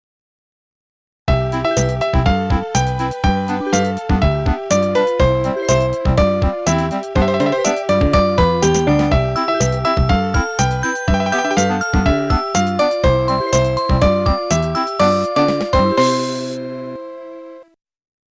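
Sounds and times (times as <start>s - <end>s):
melody: 1.3s - 17.6s.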